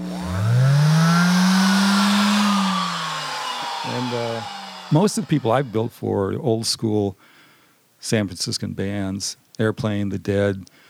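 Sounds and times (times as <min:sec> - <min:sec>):
hand sander running: 0:00.0 - 0:06.1
speech: 0:04.9 - 0:07.3, 0:08.0 - 0:10.8.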